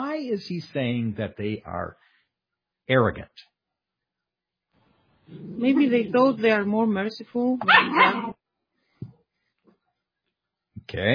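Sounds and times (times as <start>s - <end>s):
speech: 0.2s - 2.1s, 2.9s - 3.5s, 5.3s - 8.4s, 10.9s - 11.1s
dog barking: 7.6s - 8.3s
faint dog yelp: 7.7s - 8.3s.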